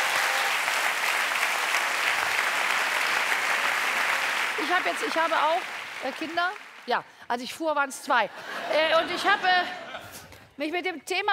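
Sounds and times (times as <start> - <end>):
crowd applause: 0.0 - 7.0
speech: 4.6 - 9.8, 10.6 - 11.3
laughter: 8.3 - 10.4.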